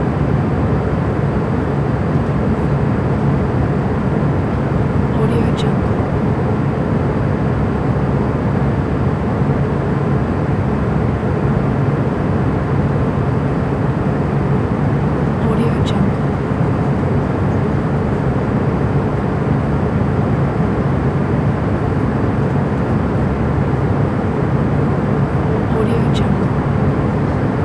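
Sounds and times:
ambience inside a passenger jet: 0.1s - 27.6s.

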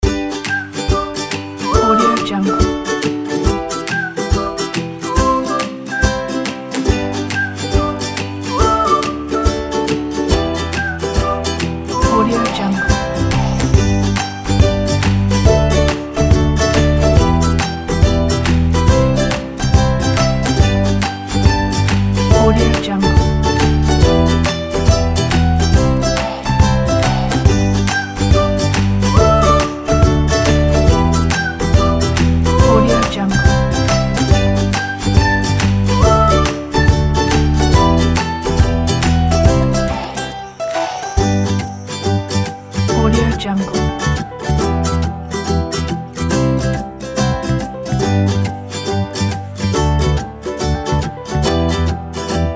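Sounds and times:
positive happy music: 0.0s - 52.5s.

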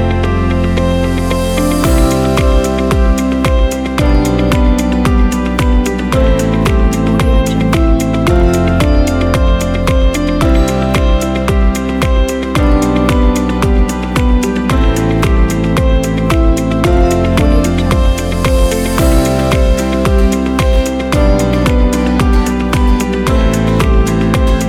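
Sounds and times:
calm corporate pop music: 0.0s - 24.6s.

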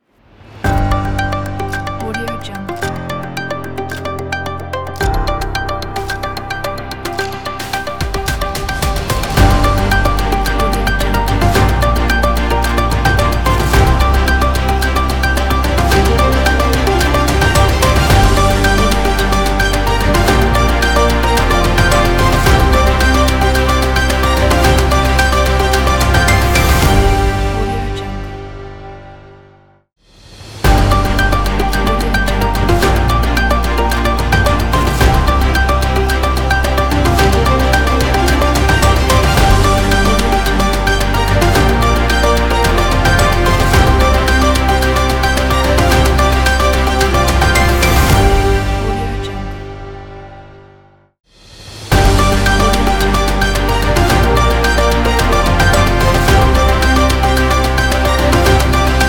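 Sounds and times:
news opener intro ident music: 0.4s - 59.0s.

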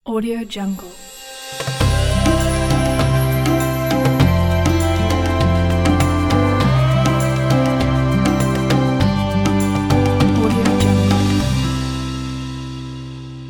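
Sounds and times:
Ramadan logo jingle: 1.4s - 13.4s.

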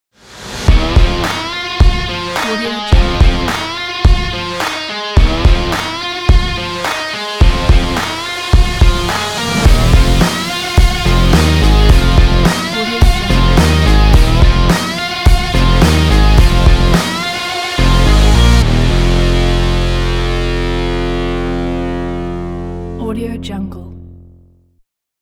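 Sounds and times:
rock opener ident: 0.3s - 23.0s.

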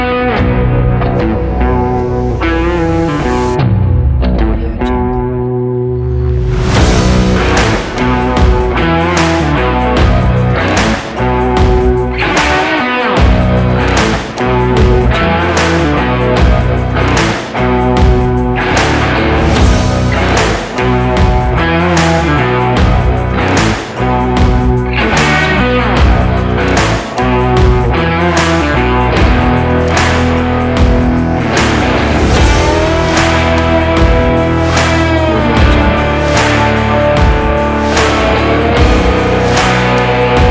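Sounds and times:
rock music: 0.0s - 40.5s.

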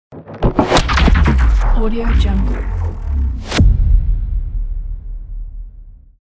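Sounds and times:
transforming logo sound: 0.1s - 6.0s.

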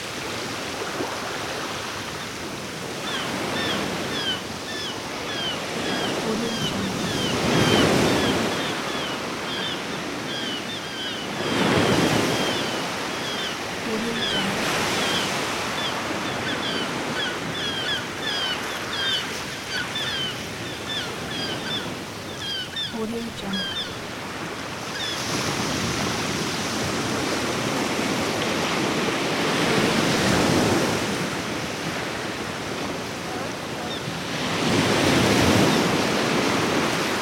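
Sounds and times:
sea waves: 0.0s - 37.1s
seagulls calling: 3.0s - 25.3s.

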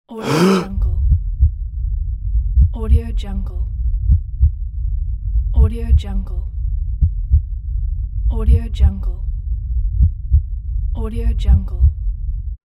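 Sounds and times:
deep breath: 0.2s - 0.7s
heartbeat: 0.8s - 3.2s, 3.8s - 8.9s, 9.8s - 10.8s, 11.4s - 12.6s.

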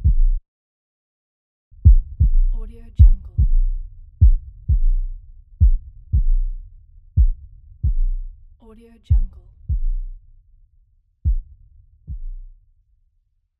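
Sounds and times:
heartbeat: 0.0s - 0.4s, 1.8s - 8.4s, 9.1s - 10.2s, 11.2s - 12.6s.

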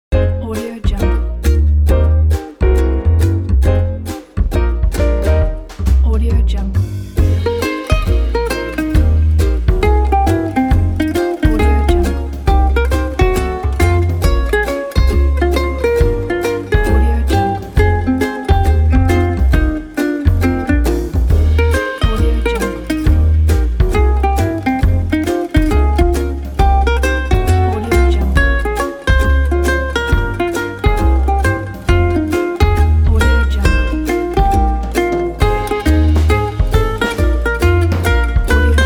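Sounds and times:
jazzy ukulele background music: 0.0s - 38.8s.

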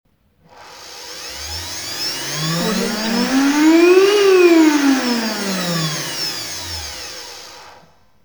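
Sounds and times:
industrial machine: 1.5s - 7.1s.

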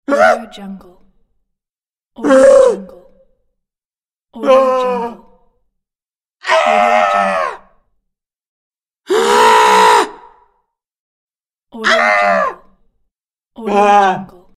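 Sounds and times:
person screaming: 2.2s - 2.9s, 4.4s - 5.3s, 6.4s - 7.7s, 9.1s - 10.4s, 11.8s - 12.7s, 13.6s - 14.4s.

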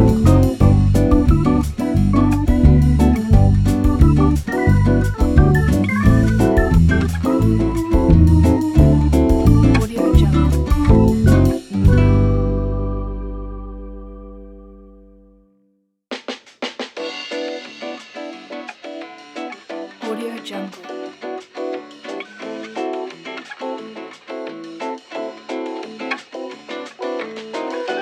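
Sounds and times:
elevator music: 0.0s - 15.4s.

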